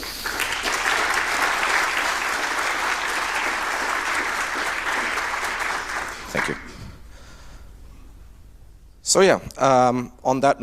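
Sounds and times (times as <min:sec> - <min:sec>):
audience applause: 0:00.0 - 0:06.9
speech: 0:09.1 - 0:10.6.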